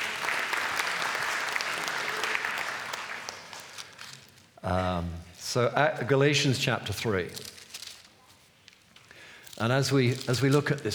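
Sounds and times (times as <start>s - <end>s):
audience applause: 0.0s - 3.8s
speech: 4.7s - 7.5s, 9.6s - 10.9s.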